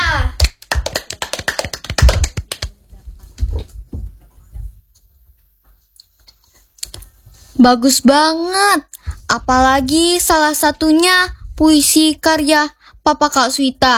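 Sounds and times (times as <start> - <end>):
audience clapping: 0.4 - 2.8
speech: 7.6 - 13.9.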